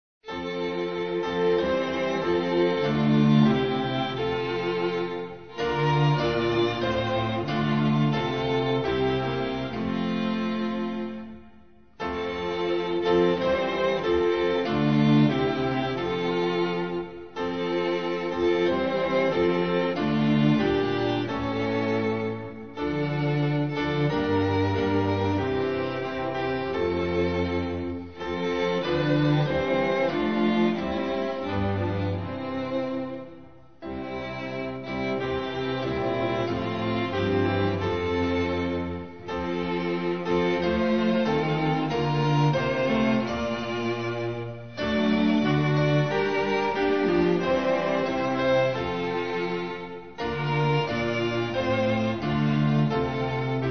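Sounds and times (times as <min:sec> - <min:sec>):
instrumental music: 0:00.2 - 0:53.7.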